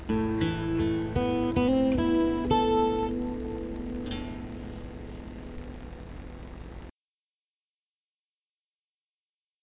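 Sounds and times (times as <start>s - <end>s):
guitar: 0.0s - 6.9s.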